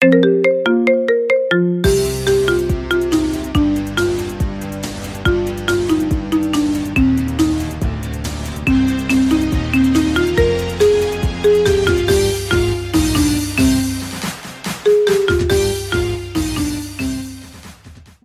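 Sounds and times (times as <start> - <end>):
marimba: 0.0 - 17.5.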